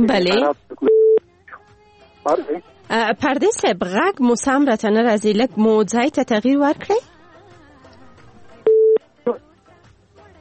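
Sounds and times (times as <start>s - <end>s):
speech: 0.0s - 0.9s, 2.2s - 7.1s
telephone busy tone after a dropped call: 0.8s - 1.2s, 8.7s - 9.4s.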